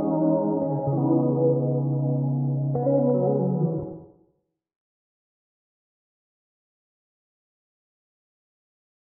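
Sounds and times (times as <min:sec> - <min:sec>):
mellow pop music: 0:00.0 - 0:04.0.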